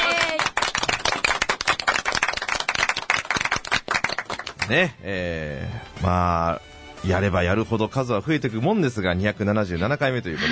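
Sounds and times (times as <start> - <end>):
hand clapping: 0.0 - 4.9
speech: 4.7 - 10.5.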